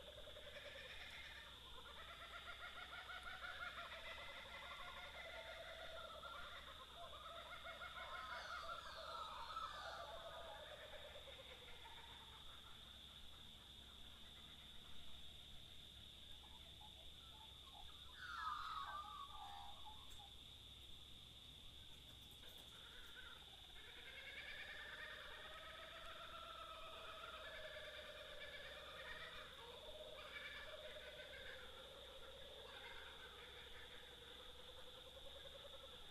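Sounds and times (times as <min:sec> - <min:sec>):
Australian birds: 0:00.0 - 0:36.0.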